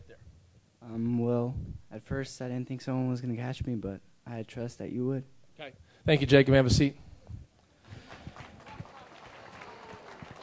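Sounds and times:
speech: 0:00.1 - 0:07.0
audience clapping: 0:07.9 - 0:10.4.

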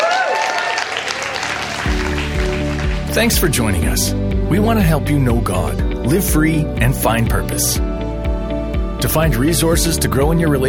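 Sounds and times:
audience cheering and applause: 0:00.0 - 0:03.9
speech: 0:03.1 - 0:07.9, 0:09.0 - 0:10.6.

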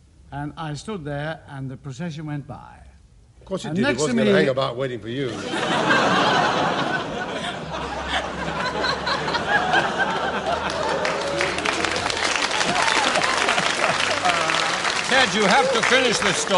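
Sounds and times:
speech: 0:00.3 - 0:02.9, 0:03.5 - 0:07.0, 0:15.2 - 0:16.5
crowd laughing: 0:05.3 - 0:16.5
audience applause: 0:07.4 - 0:16.5.

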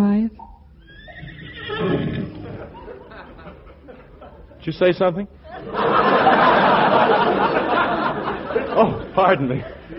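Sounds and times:
horse neighing: 0:00.8 - 0:02.5
laughter: 0:02.2 - 0:04.7, 0:05.4 - 0:09.9
speech: 0:04.7 - 0:06.5, 0:08.8 - 0:09.8.

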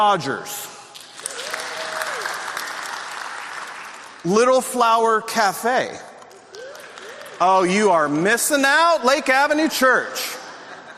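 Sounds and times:
speech: 0:00.0 - 0:00.7, 0:04.2 - 0:06.1, 0:07.4 - 0:10.3
audience applause: 0:01.0 - 0:04.2
laughter: 0:10.2 - 0:10.9.

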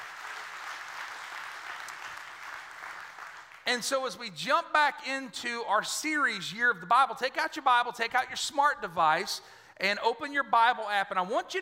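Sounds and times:
audience clapping hands: 0:00.0 - 0:03.7
speech: 0:03.7 - 0:11.6.

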